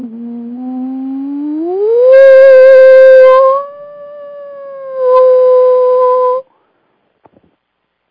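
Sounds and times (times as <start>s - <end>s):
voice frequency sweep resonating in a shower: 0.0s - 6.4s.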